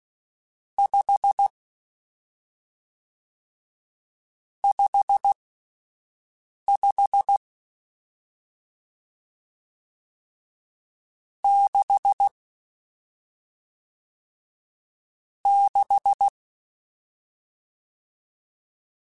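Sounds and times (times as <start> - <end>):
Morse code CW code groups: 4.6 - 5.4, 6.7 - 7.4, 11.5 - 12.3, 15.5 - 16.3.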